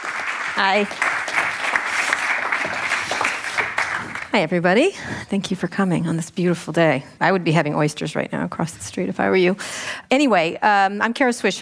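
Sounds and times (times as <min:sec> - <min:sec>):
live audience applause at the Commonwealth Club in San Francisco: 0:00.0 - 0:04.4
speech: 0:00.6 - 0:01.2, 0:04.4 - 0:11.6.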